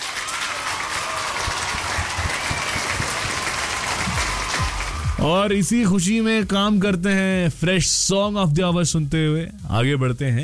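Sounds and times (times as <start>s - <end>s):
audience applause: 0.0s - 5.3s
speech: 5.2s - 10.4s.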